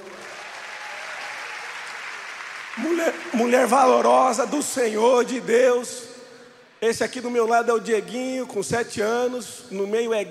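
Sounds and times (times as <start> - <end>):
audience applause: 0.0 - 4.5
speech: 2.8 - 6.1, 6.8 - 10.3.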